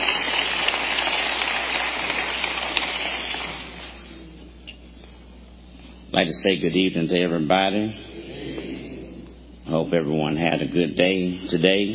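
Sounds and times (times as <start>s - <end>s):
audience clapping in praise: 0.0s - 4.1s
speech: 6.4s - 8.1s, 9.7s - 11.9s.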